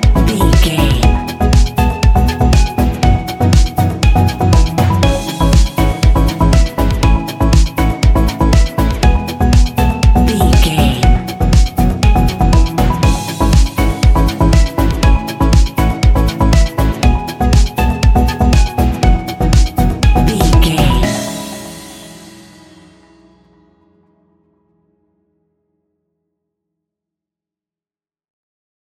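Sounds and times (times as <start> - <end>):
fast paced club music: 0.0 - 22.9.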